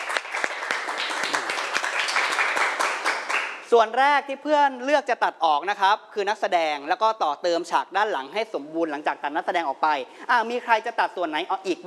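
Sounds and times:
group clapping: 0.0 - 3.7
speech: 3.7 - 11.8.

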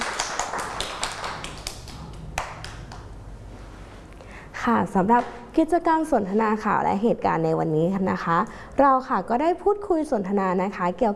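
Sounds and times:
children clapping: 0.0 - 3.1
speech: 4.7 - 11.1.

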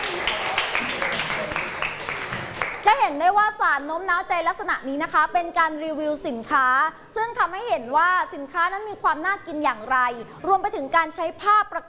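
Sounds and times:
applause for two groups: 0.0 - 3.0
speech: 3.1 - 11.8.

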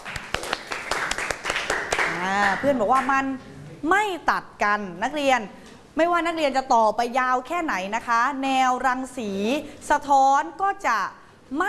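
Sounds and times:
students clapping hands: 0.0 - 3.2
speech: 2.4 - 11.6.

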